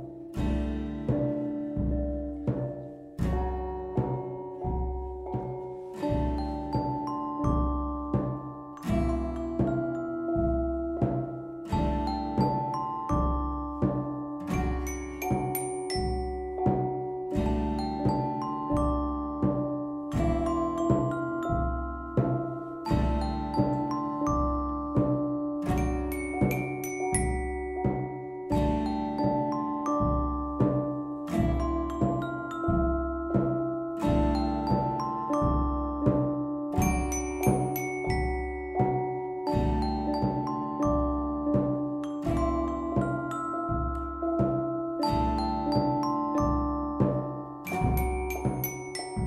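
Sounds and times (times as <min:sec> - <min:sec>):
bells ringing: 0:00.3 - 0:49.2.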